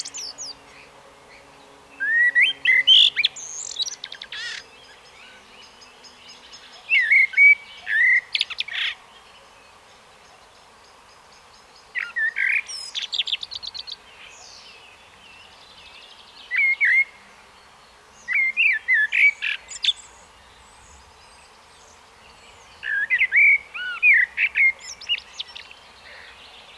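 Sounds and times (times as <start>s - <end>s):
common blackbird song: 0.0s - 26.7s.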